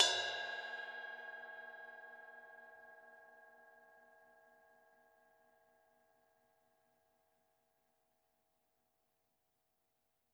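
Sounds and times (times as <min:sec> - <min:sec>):
ride cymbal from drum kit: 0:00.0 - 0:01.3.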